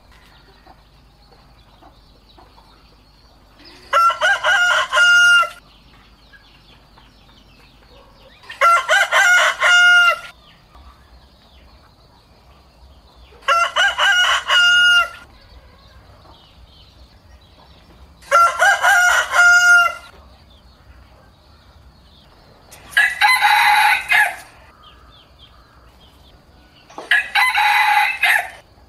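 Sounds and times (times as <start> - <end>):
rooster crowing: 3.6 - 5.6, 8.4 - 10.4, 13.4 - 16.2, 18.2 - 20.1, 22.9 - 25.2, 27.0 - 28.6.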